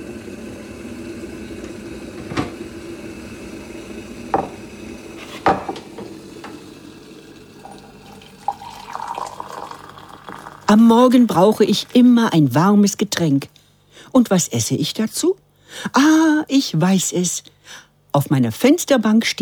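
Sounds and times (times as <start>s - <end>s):
tap water running while making malt coffee: 0.0s - 12.3s
speech: 10.7s - 19.4s.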